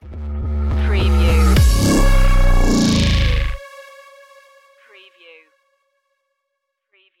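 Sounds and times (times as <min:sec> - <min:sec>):
bass tricks stinger: 0:00.0 - 0:03.6.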